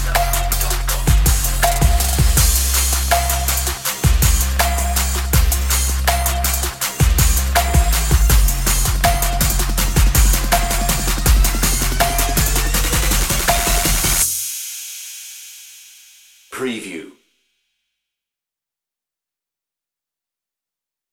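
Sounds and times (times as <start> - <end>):
trap underscore music: 0.0 - 14.5.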